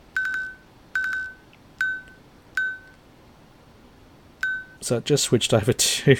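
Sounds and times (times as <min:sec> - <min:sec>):
watch beeping out the time: 0:00.2 - 0:03.0, 0:04.4 - 0:04.8
speech: 0:04.9 - 0:06.1.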